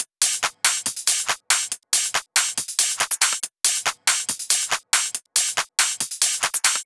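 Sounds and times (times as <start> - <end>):
full drum loop at 140 BPM: 0.0 - 6.8.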